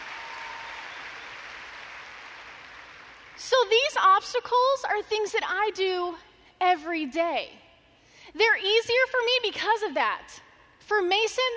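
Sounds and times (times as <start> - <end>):
audience clapping: 0.0 - 3.4
speech: 3.4 - 7.6, 8.3 - 11.5.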